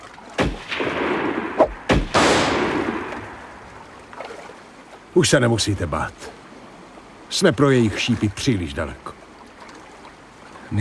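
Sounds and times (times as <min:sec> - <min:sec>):
gunshots: 0:00.4 - 0:03.7
speech: 0:05.2 - 0:06.4, 0:07.3 - 0:09.2.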